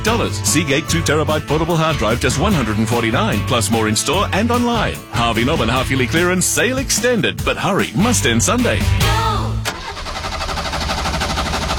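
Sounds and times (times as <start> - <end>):
speech: 0.0 - 9.3
car engine out of fuel cranking and struggling to start: 9.5 - 11.7.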